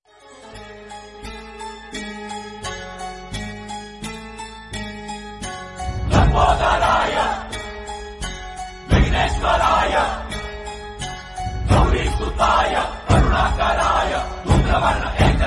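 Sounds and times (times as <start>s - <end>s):
Bhakti devotional song ringtone: 0.1s - 15.3s.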